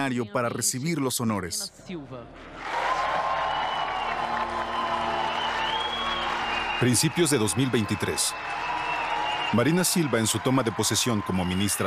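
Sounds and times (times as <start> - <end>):
speech: 0.0 - 2.8, 6.8 - 8.8, 9.5 - 11.8
audience applause: 2.5 - 11.8.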